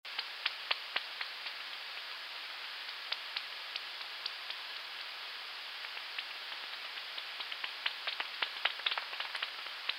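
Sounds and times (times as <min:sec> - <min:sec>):
bat echolocation clicks: 0:00.1 - 0:02.1, 0:02.8 - 0:04.8, 0:05.8 - 0:09.9.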